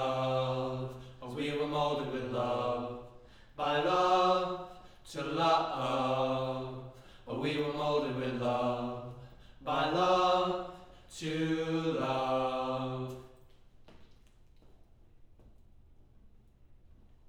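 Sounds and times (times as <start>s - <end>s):
choir singing low and mid harmony: 0.0s - 13.4s.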